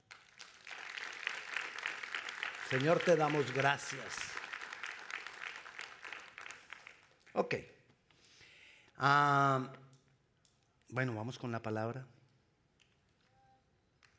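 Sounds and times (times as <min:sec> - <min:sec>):
audience applauding: 0:00.0 - 0:07.4
speech: 0:02.7 - 0:04.4, 0:07.4 - 0:07.7, 0:09.0 - 0:09.8, 0:10.9 - 0:12.2.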